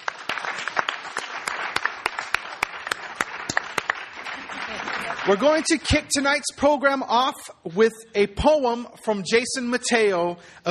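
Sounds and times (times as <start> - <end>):
audience applause welcoming panelists: 0.0 - 5.8
speech: 5.2 - 10.6.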